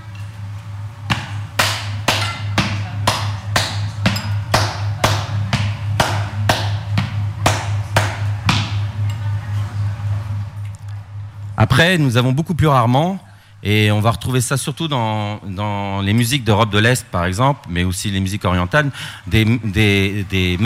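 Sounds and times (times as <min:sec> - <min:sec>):
constant low hum: 0:00.0 - 0:20.6
sharp taps in three-beat waltz time: 0:01.6 - 0:08.7
speech: 0:11.6 - 0:20.6.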